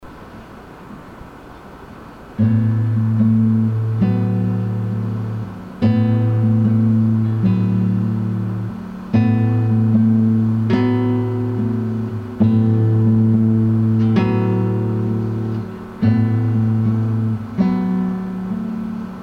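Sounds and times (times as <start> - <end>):
guitar: 2.4 - 19.2.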